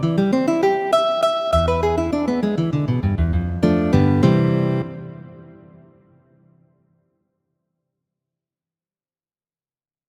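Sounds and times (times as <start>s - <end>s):
guitar waltzes: 0.0s - 6.0s.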